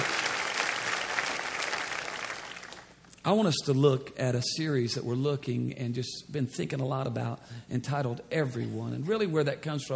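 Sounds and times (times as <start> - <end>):
church congregation clapping hands: 0.0 - 3.0
speech: 3.3 - 9.9.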